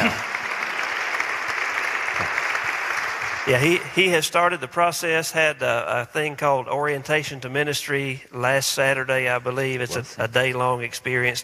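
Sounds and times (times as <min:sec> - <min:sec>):
applause: 0:00.0 - 0:04.2
speech: 0:03.4 - 0:11.4.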